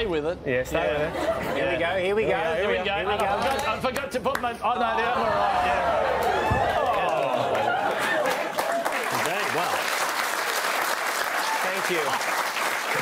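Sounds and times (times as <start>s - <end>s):
speech: 0.0s - 6.4s, 11.9s - 12.5s
laughter: 0.8s - 4.0s, 5.6s - 9.8s
audience applause: 5.8s - 13.0s.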